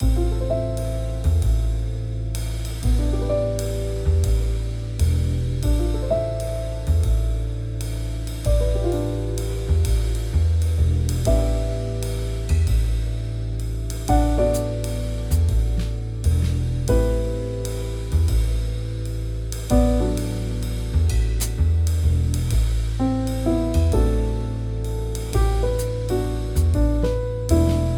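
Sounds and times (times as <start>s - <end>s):
jazz music: 0.0s - 27.9s.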